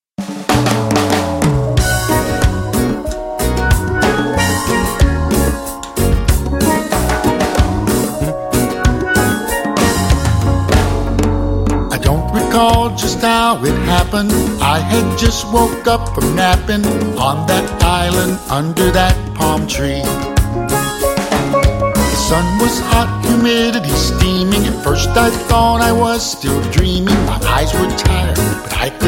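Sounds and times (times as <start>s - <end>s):
tropical country music: 0.2s - 29.0s.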